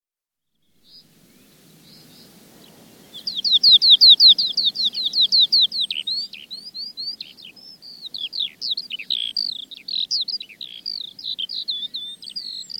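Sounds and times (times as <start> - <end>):
Eurasian skylark singing in song flight: 3.1 - 12.7.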